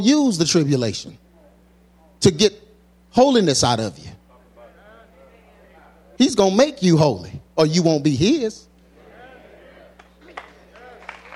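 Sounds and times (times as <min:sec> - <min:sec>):
speech: 0:00.0 - 0:01.2, 0:02.2 - 0:04.2, 0:06.2 - 0:08.7
steady hum: 0:00.0 - 0:11.3
audience hand claps: 0:10.0 - 0:11.3.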